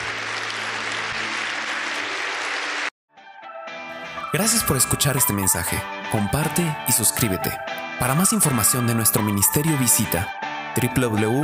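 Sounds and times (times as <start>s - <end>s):
audience applause: 0.0s - 2.9s
speech: 4.3s - 11.4s.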